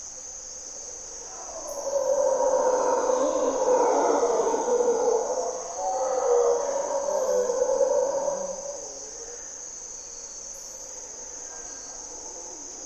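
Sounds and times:
high insect drone: 0.0s - 12.8s
mantled howler monkey howling: 1.3s - 9.4s.

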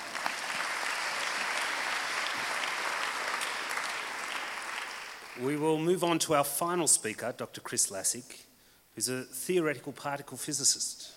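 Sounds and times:
audience round of applause: 0.0s - 5.6s
speech: 5.4s - 11.1s.

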